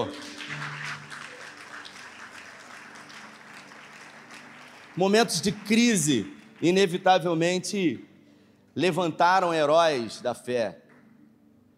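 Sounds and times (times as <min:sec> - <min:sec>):
audience applause: 0:00.0 - 0:07.0
speech: 0:05.0 - 0:08.1, 0:08.8 - 0:10.8.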